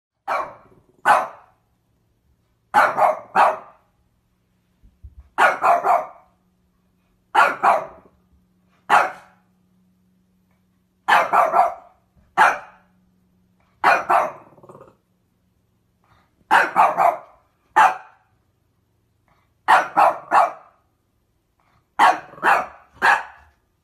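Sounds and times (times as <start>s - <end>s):
dog barking: 0.2s - 1.6s, 2.7s - 3.9s, 5.4s - 6.3s, 7.3s - 8.1s, 8.9s - 9.4s, 11.1s - 12.9s, 13.8s - 14.5s, 16.5s - 18.3s, 19.6s - 20.8s, 22.0s - 23.5s
low steady hum: 0.2s - 23.8s.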